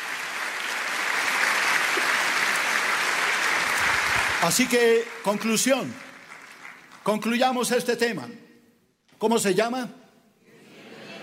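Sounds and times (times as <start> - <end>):
audience applause: 0.0 - 7.3
speech: 4.4 - 6.1, 7.1 - 8.4, 9.2 - 10.0.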